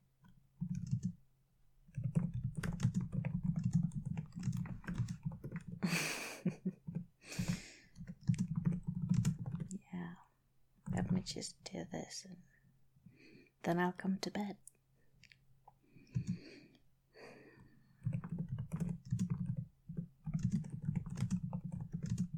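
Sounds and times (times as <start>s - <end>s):
fast typing on a computer keyboard: 0.2s - 1.2s, 1.8s - 5.9s, 6.6s - 9.8s, 10.8s - 11.3s, 16.0s - 16.5s, 17.8s - 22.3s
speech: 11.3s - 12.5s, 13.6s - 14.7s.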